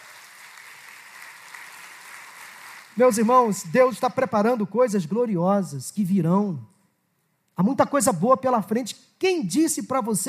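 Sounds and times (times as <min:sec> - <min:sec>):
congregation applauding during a church service: 0:00.0 - 0:03.7
speech: 0:03.0 - 0:06.7, 0:07.6 - 0:10.2.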